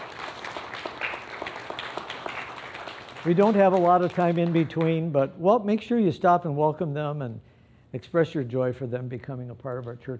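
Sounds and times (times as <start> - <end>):
church audience applause: 0.0 - 4.6
speech: 3.2 - 10.1.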